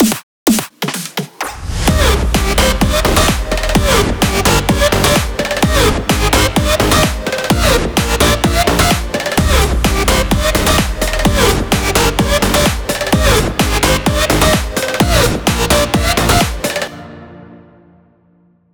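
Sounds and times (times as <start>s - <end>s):
music track: 1.6s - 18.7s.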